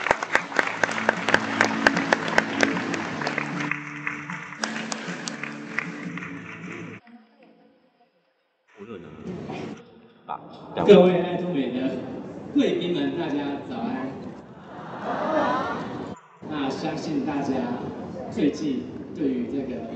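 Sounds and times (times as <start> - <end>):
audience applause: 0.0 - 7.0, 14.6 - 16.2
speech: 10.8 - 14.2, 16.8 - 19.9
laughter: 14.4 - 17.0.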